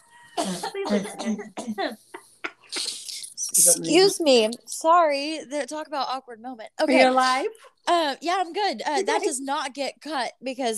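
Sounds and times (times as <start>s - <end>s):
person coughing after choking on own spit: 0.4s - 2.0s
speech: 0.4s - 2.0s, 3.6s - 10.7s
throat clearing: 0.4s - 3.2s.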